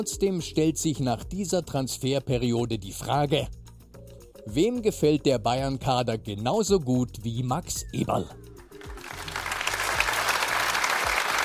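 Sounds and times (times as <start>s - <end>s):
speech: 0.0s - 3.6s, 4.4s - 8.5s
audience clapping: 8.8s - 11.4s.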